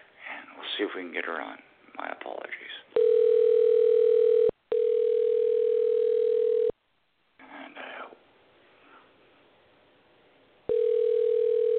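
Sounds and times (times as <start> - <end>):
speech: 0.8 - 3.1
telephone ringing tone on outgoing call: 3.0 - 6.7, 10.7 - 11.7.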